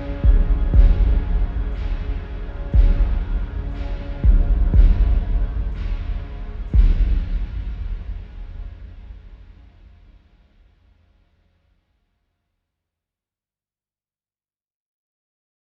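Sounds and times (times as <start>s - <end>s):
gloomy solo percussion piece: 0.0s - 9.3s.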